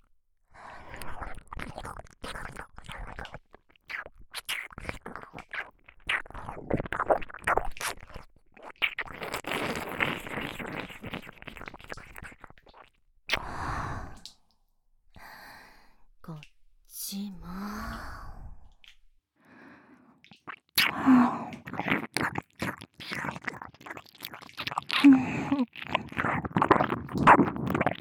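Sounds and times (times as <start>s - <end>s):
intense ear licking sounds: 0.8s - 14.4s, 20.2s - 27.9s.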